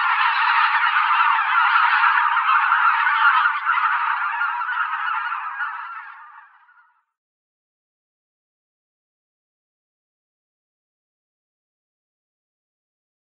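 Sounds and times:
flock of greater white-fronted geese calling: 0.0s - 7.1s.

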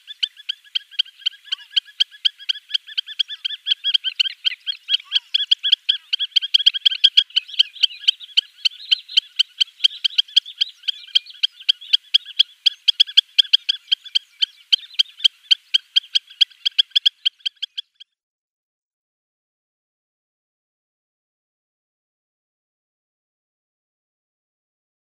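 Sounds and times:
spur-winged plover calls: 0.0s - 18.2s.

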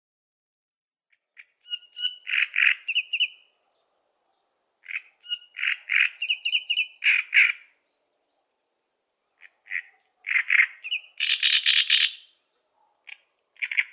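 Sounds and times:
Great reed warbler singing: 1.1s - 3.5s, 4.8s - 12.5s, 13.1s - 13.9s.

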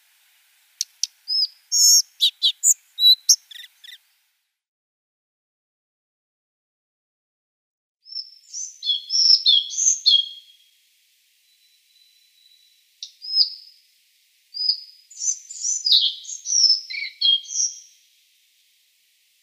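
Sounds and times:
collared flycatcher song: 0.0s - 4.3s, 8.0s - 19.4s.

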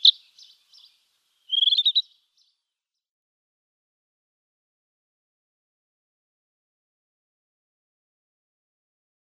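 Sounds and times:
rufous-tailed scrub robin song of sweet notes and warbled phrases: 0.0s - 0.9s, 1.5s - 2.2s.

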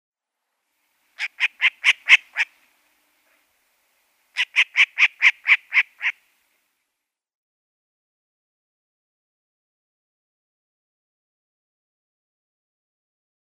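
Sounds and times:
Short-eared Owl calls: 1.2s - 3.5s, 4.3s - 6.3s.

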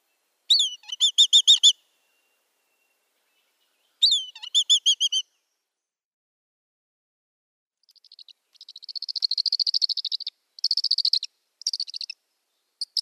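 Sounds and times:
Black Kite nestling calling: 0.5s - 1.8s, 4.0s - 5.2s, 7.8s - 12.2s.

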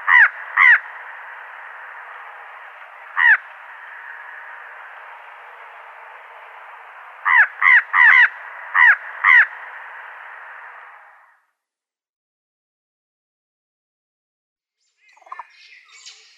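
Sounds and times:
fan-tailed raven croaking calls: 0.0s - 11.3s.

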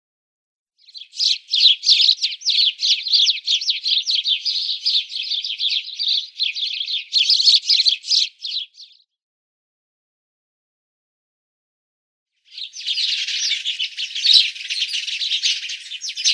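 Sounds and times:
house sparrow chirping: 0.8s - 9.0s, 12.5s - 16.3s.

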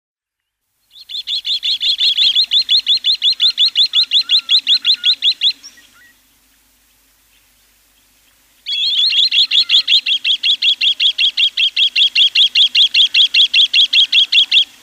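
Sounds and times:
green sandpiper calling with clipped high ticks: 0.9s - 6.1s, 8.6s - 14.8s.

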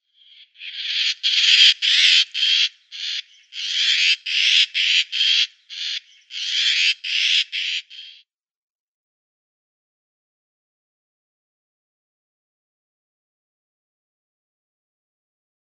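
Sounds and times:
Eurasian magpie rattling loudly in a dense chatter: 0.4s - 8.2s.

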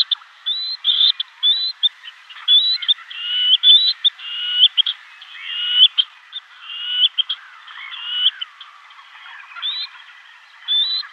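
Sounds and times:
black-necked grebe calling with high rising whistled notes: 0.0s - 8.5s, 9.2s - 11.1s.

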